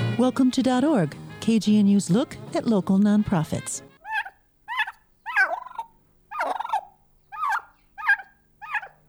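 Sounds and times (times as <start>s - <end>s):
speech: 0.2s - 3.9s
turkey gobbling: 4.0s - 9.0s.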